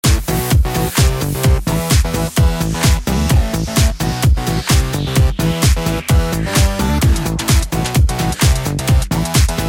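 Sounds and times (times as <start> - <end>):
new song: 0.1 - 9.5.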